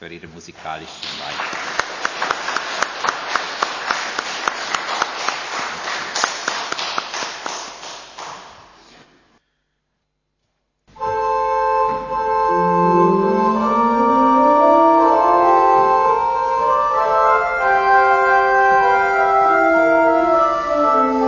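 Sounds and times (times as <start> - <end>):
speech: 0.0 - 1.8
audience applauding: 0.6 - 8.7
sustained musical tone: 10.9 - 21.2.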